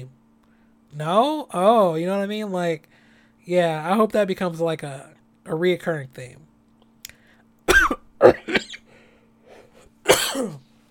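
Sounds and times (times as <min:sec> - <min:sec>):
speech: 0:00.9 - 0:06.5
person coughing after choking on spit: 0:07.7 - 0:08.9, 0:10.0 - 0:10.7.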